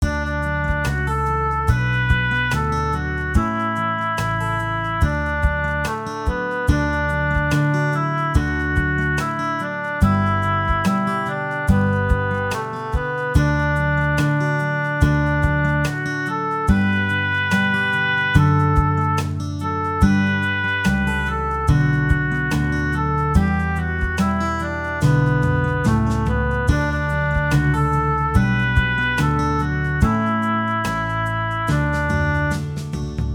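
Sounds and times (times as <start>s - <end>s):
guitar: 0.0s - 33.3s.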